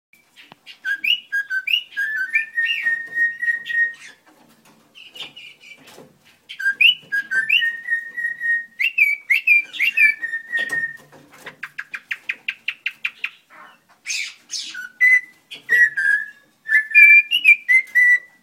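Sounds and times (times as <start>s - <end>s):
spotted ground thrush Zoothera guttata guttata whistling: 0.8s - 4.2s, 6.6s - 11.1s, 14.2s - 18.4s.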